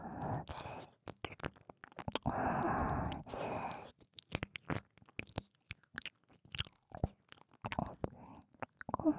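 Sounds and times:
ear licking ASMR: 0:00.3 - 0:09.1.

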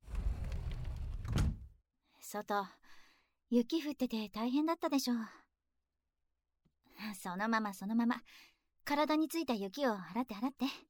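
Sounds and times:
front entrance door scraping shut: 0:00.0 - 0:01.7
speech: 0:02.3 - 0:02.8, 0:03.5 - 0:05.4, 0:07.0 - 0:10.8.

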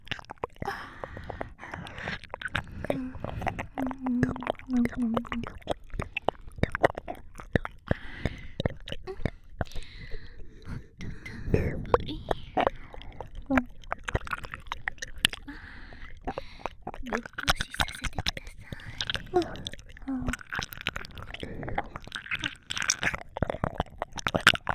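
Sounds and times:
ear licking on binaural microphone: 0:00.0 - 0:24.7
binaural microphone whispering in both ears: 0:02.8 - 0:05.6, 0:10.6 - 0:13.8, 0:17.0 - 0:20.4.

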